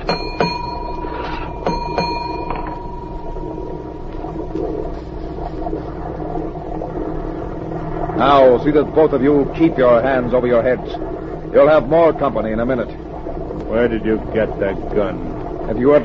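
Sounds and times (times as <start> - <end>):
ship's engine room signal bell ringing: 0.0 - 4.0
steady low machinery rumble: 0.0 - 16.0
speech: 8.5 - 13.0, 13.7 - 16.0.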